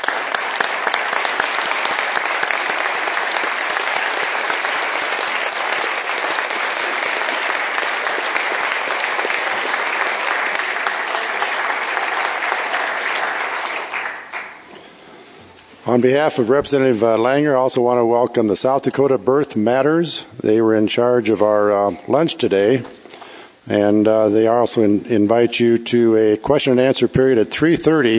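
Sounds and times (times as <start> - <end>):
audience applause for a former House Speaker at a South Dakota gathering: 0.0 - 14.7
speech: 16.0 - 23.0, 23.7 - 28.1.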